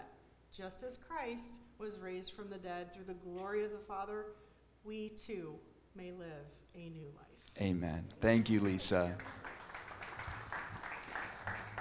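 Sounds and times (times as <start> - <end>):
speech: 0.6 - 9.5
church congregation clapping rhythmically: 8.1 - 11.8.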